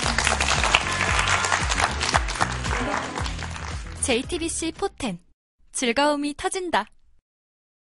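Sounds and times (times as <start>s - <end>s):
audience applause: 0.0s - 4.0s
music: 0.0s - 5.3s
speech: 4.1s - 5.2s, 5.8s - 7.0s.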